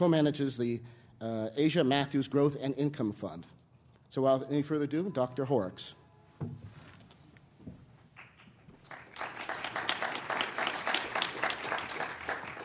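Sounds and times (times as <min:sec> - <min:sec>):
speech: 0:00.0 - 0:06.6
audience applause: 0:08.8 - 0:12.6.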